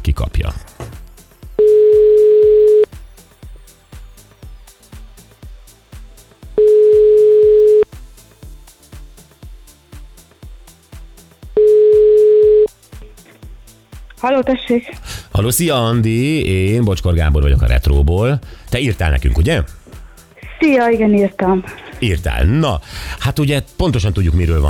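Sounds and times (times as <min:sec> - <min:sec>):
rhythmic music bed: 0:00.0 - 0:24.6
telephone line ringing on a radio call-in: 0:01.6 - 0:02.9, 0:06.6 - 0:07.9, 0:11.6 - 0:12.7
speech: 0:14.2 - 0:19.8, 0:20.6 - 0:24.6.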